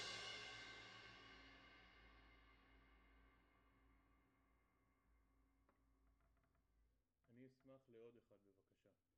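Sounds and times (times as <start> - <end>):
drum kit: 0.0 - 1.7.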